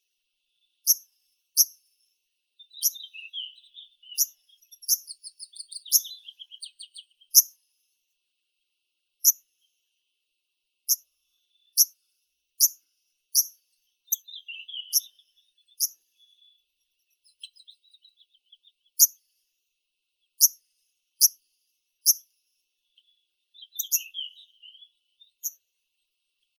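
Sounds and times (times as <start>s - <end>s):
Phylloscopus borealis arctic warbler: 0.5s - 1.8s, 2.6s - 7.6s, 13.4s - 19.3s, 22.0s - 25.6s.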